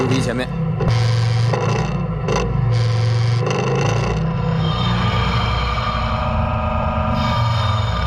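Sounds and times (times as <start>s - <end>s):
forklift engine droning while raising an SUV: 0.0s - 8.0s
metallic scraping: 0.8s - 8.0s.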